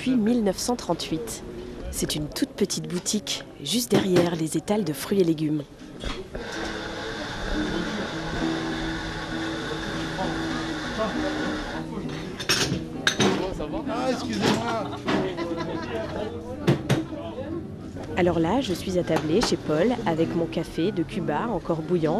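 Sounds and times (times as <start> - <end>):
speech: 0.0 - 6.8, 13.8 - 16.7, 17.5 - 22.1
murmur of chatter in a small café: 0.0 - 22.1
laughter: 10.2 - 12.1, 14.2 - 16.6
cups and saucers clinking in a small café: 12.1 - 13.5.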